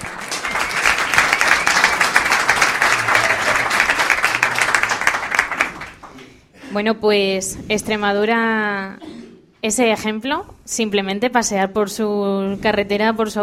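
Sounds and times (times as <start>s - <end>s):
audience applause: 0.0s - 6.2s
speech: 6.8s - 13.4s.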